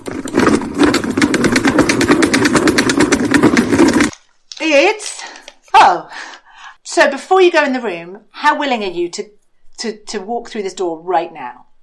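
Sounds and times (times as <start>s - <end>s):
salad spinner whirring with rattling basket: 0.0s - 4.2s
speech: 4.7s - 5.1s, 7.0s - 11.7s.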